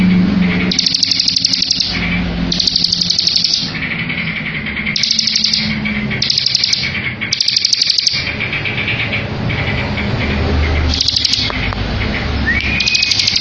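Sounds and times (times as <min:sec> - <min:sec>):
bar-winged prinia song: 0:00.0 - 0:13.3.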